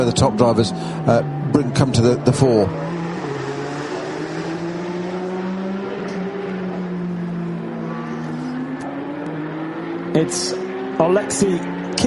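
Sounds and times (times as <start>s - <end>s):
speech: 0.0s - 2.9s, 10.2s - 12.0s
Porsche race car engine roaring: 0.0s - 12.0s.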